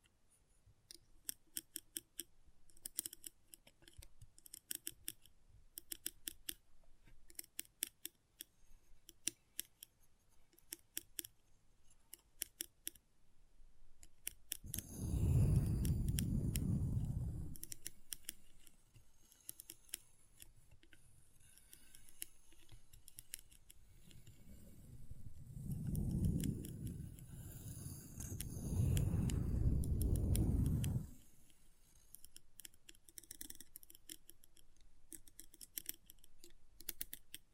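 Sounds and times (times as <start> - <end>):
magnetic crisp clicks and snips: 0.9 - 6.6, 14.0 - 24.5, 25.4 - 37.5
deep rumbling: 25.0 - 31.2.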